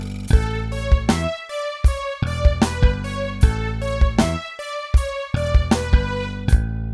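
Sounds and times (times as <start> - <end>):
violin playing as rap backing: 0.4 - 6.5.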